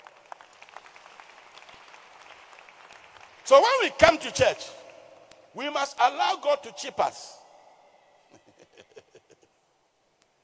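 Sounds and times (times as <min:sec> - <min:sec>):
audience applauding: 0:00.0 - 0:05.0
speech: 0:03.5 - 0:04.8, 0:05.6 - 0:07.4.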